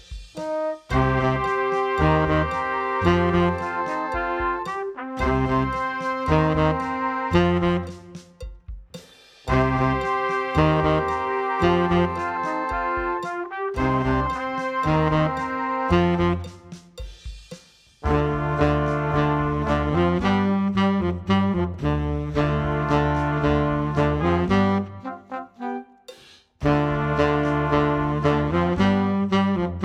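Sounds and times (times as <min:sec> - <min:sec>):
loud heavy metal tenor saxophone: 0:00.4 - 0:08.4, 0:09.5 - 0:16.7, 0:18.0 - 0:26.0, 0:26.6 - 0:29.8.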